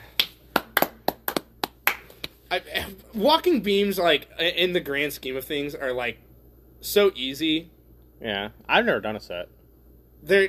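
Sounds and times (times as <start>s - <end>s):
people clapping: 0.0s - 2.4s
speech: 2.5s - 6.2s, 6.8s - 9.6s, 10.2s - 10.4s.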